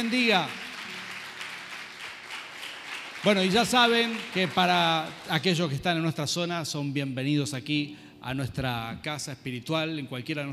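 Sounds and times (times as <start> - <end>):
speech: 0.0 - 0.6, 3.2 - 10.5
audience applause: 0.0 - 5.8.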